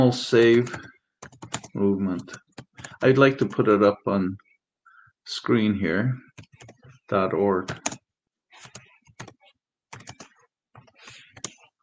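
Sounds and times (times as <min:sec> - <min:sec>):
speech: 0:00.0 - 0:00.9, 0:01.8 - 0:04.4, 0:05.3 - 0:08.0
typing on a computer keyboard: 0:00.6 - 0:03.0, 0:06.4 - 0:06.9, 0:08.6 - 0:11.7.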